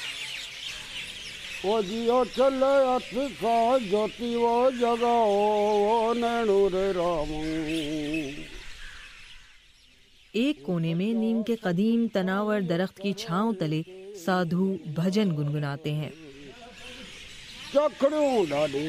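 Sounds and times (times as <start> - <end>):
sparrows, kites, crows, koels, mynas and peacocks calling: 0.0 - 18.8
speech: 1.6 - 8.5, 10.3 - 16.2, 17.7 - 18.8.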